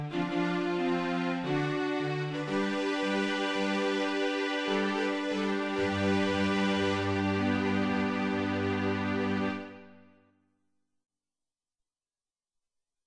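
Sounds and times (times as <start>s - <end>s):
strings: 0.0s - 10.1s.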